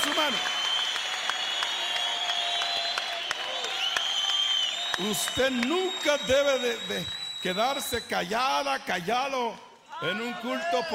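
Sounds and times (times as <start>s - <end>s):
audience applauding: 0.0s - 8.0s
speech: 5.0s - 10.9s.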